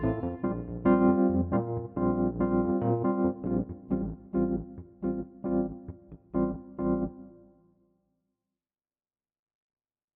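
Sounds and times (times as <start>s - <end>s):
Wurlitzer electric piano: 0.0s - 7.6s.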